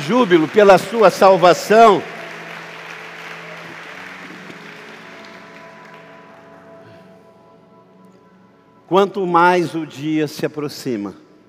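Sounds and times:
audience applause: 0:00.0 - 0:07.1
speech: 0:00.1 - 0:02.2, 0:08.9 - 0:11.2.

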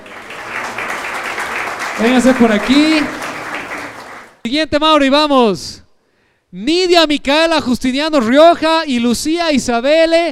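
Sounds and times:
crowd clapping: 0:00.0 - 0:04.4
speech: 0:02.0 - 0:03.2, 0:04.4 - 0:05.8, 0:06.5 - 0:10.3.

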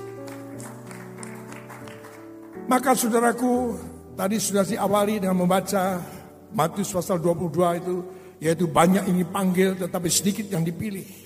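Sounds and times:
audience applause: 0:00.0 - 0:02.6
speech: 0:02.7 - 0:11.2.

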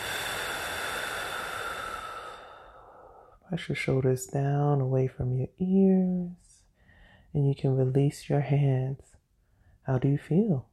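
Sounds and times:
deep breath blown out during a calming sleep meditation: 0:00.0 - 0:03.4
speech: 0:03.5 - 0:06.4, 0:07.3 - 0:09.2, 0:09.8 - 0:10.7.

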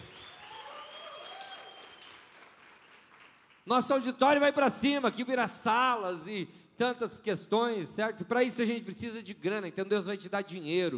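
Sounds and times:
faint voices and cheers: 0:00.0 - 0:02.2
audience applause: 0:00.0 - 0:03.7
speech: 0:03.7 - 0:10.9.

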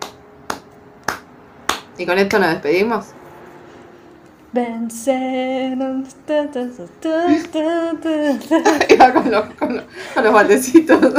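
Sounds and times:
lone person's sharp crisp hand claps: 0:00.0 - 0:02.4
speech: 0:02.0 - 0:03.2, 0:04.5 - 0:11.1
laughter: 0:08.4 - 0:11.1.

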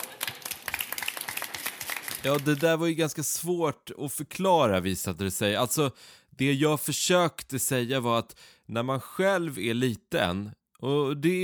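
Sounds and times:
audience applause: 0:00.0 - 0:02.8
speech: 0:02.2 - 0:11.4.

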